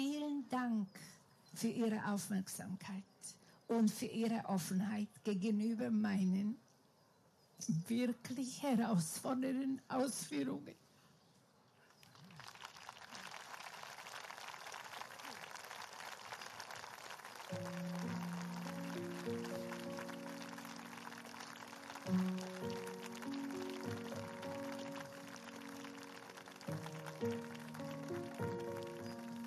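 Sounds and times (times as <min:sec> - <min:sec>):
speech: 0:00.0 - 0:06.6, 0:07.6 - 0:10.8
audience clapping: 0:12.0 - 0:29.4.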